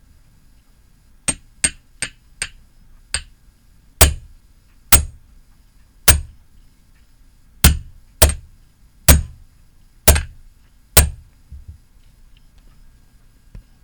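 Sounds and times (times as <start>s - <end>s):
hammering: 4.0s - 4.3s, 4.9s - 5.2s, 7.6s - 8.5s, 9.1s - 9.4s, 10.1s - 10.4s, 11.0s - 11.2s.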